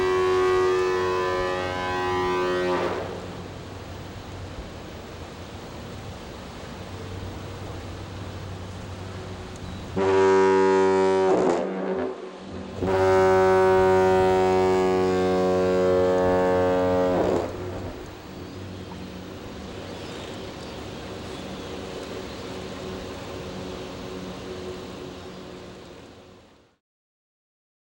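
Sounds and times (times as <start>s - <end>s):
Duluth foghorn: 0.0s - 3.8s, 9.9s - 19.1s.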